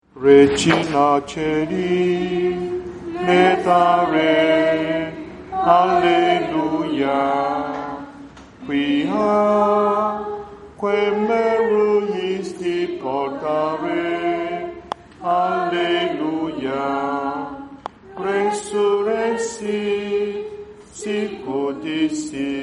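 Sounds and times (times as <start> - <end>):
hymn: 0.0 - 22.6.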